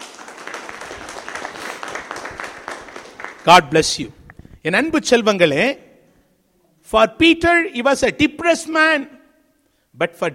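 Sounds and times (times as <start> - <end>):
audience clapping hands: 0.0 - 4.4
speech: 3.4 - 5.8, 6.9 - 9.2, 10.0 - 10.3.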